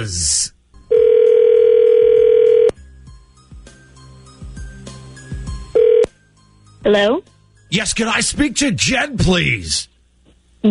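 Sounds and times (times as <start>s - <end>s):
speech: 0.0s - 0.5s, 6.8s - 9.9s
telephone dial tone: 0.9s - 2.8s, 5.8s - 6.2s.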